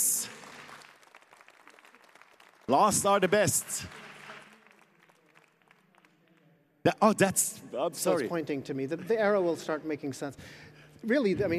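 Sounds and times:
audience applause: 0.0 - 6.4
speech: 2.7 - 4.0, 6.8 - 11.5.

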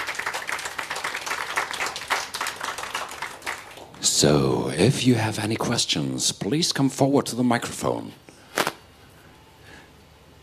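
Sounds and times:
crowd applauding: 0.0 - 4.0
speech: 4.1 - 8.3.

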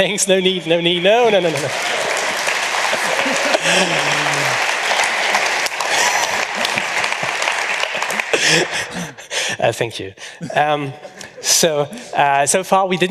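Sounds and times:
speech: 0.0 - 2.1, 3.7 - 4.7, 8.5 - 13.0
audience applause: 0.4 - 9.4
laughter: 1.2 - 12.4.

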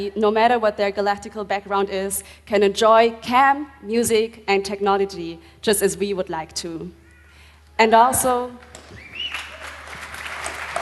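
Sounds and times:
speech: 0.0 - 7.0, 7.8 - 8.7
campers clapping softly at a music and technology camp: 8.6 - 10.8.

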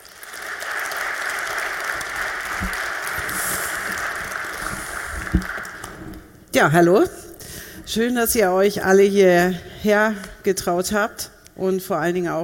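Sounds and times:
crowd applauding: 0.0 - 6.3
speech: 5.3 - 5.6, 6.6 - 7.2, 7.9 - 12.4.

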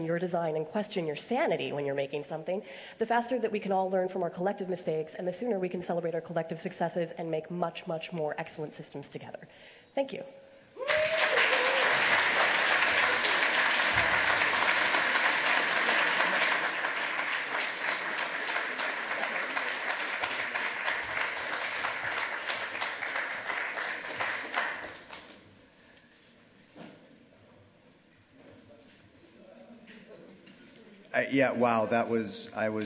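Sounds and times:
speech: 0.0 - 11.2, 31.3 - 32.8
audience applause: 10.8 - 25.3.

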